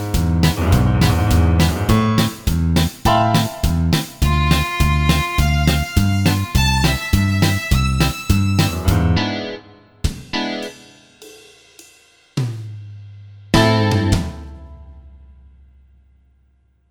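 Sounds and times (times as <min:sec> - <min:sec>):
backing track: 0:00.0 - 0:11.0, 0:13.5 - 0:15.2.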